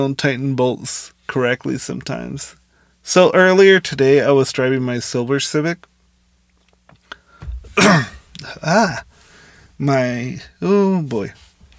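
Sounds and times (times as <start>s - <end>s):
speech: 0.0s - 5.9s, 7.8s - 9.1s, 9.8s - 11.4s
person coughing after swallowing saliva the wrong way: 7.4s - 9.0s.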